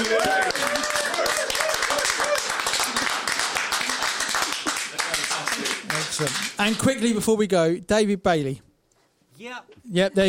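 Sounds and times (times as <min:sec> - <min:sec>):
audience applause: 0:00.0 - 0:06.8
speech: 0:06.2 - 0:08.7, 0:09.4 - 0:10.2.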